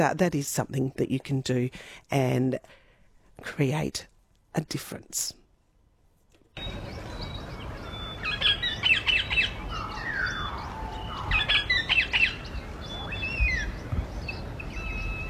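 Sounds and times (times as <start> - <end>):
speech: 0.0 - 2.8, 3.4 - 5.4, 6.6 - 6.9
bird call: 6.6 - 15.2.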